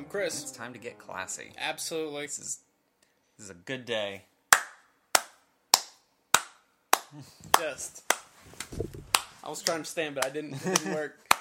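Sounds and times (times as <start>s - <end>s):
speech: 0.1s - 2.7s, 3.4s - 4.3s, 7.1s - 11.2s
slow hand clapping: 4.5s - 11.3s.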